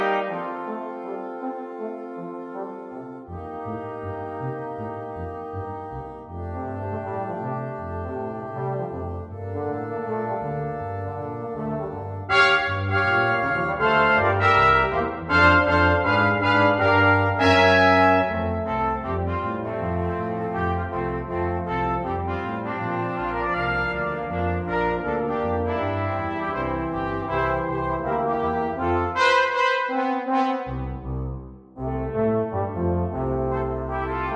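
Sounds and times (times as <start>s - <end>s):
instrumental Christmas song: 0.0s - 34.3s.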